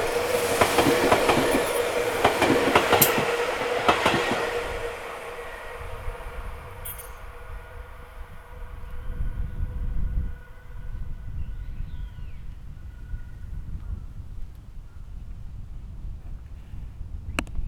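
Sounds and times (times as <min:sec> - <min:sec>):
up train passing: 0:00.0 - 0:11.9.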